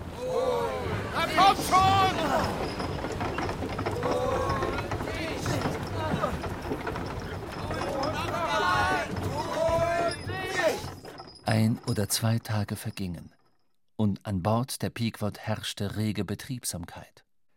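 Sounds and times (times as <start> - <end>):
crew shouting: 0.0 - 11.7
ratcheting winch hoisting the anchor aboard the whaling ship Pequod: 1.2 - 13.6
speech: 11.6 - 13.4, 14.0 - 17.2.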